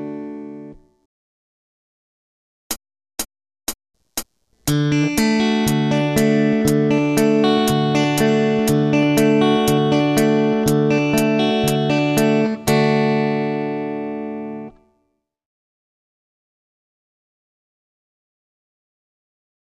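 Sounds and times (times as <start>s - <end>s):
rhythm guitar: 4.1s - 14.8s.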